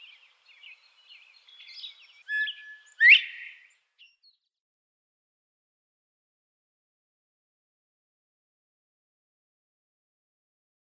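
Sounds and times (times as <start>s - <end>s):
Northern Bobwhite male display call: 0.0s - 4.2s.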